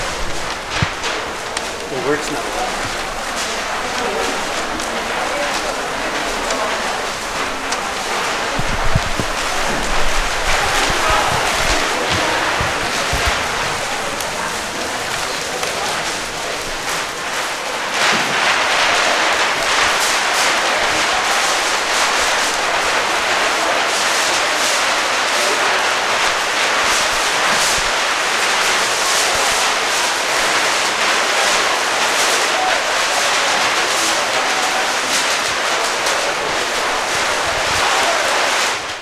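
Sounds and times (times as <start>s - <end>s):
long roll of butcher paper unrolling: 0.0s - 39.0s
speech: 1.9s - 2.7s.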